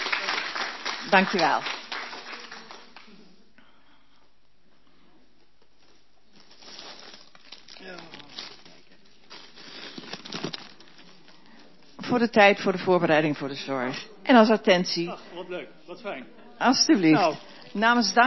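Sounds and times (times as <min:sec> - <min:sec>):
audience applause: 0:00.0 - 0:03.4
speech: 0:01.1 - 0:01.8, 0:12.1 - 0:18.2.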